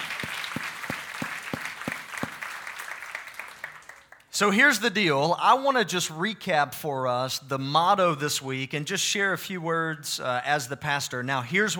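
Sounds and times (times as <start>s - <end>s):
audience applause: 0.0s - 4.2s
speech: 4.4s - 11.7s.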